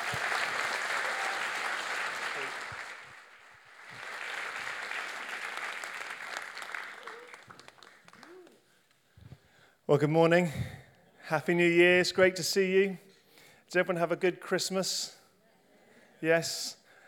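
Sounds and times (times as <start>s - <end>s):
church audience applauding to welcome a speaker: 0.0s - 8.6s
speech: 9.9s - 13.0s, 13.7s - 15.2s, 16.2s - 16.8s.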